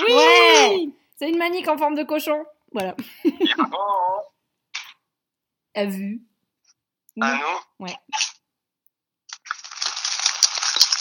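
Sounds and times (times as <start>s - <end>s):
speech: 1.2s - 4.3s, 5.8s - 6.3s, 7.2s - 8.4s
crinkling of a cereal packet being handled: 9.3s - 11.0s.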